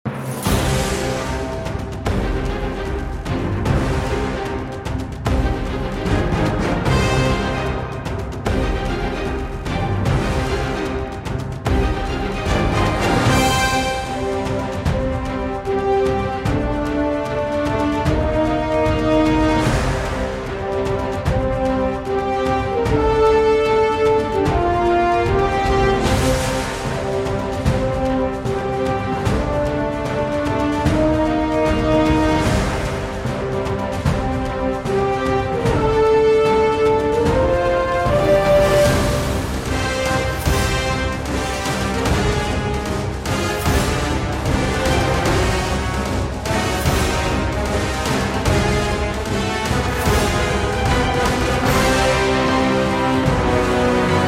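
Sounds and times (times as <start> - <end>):
forest dragon stage game background music: 0.0 - 54.2.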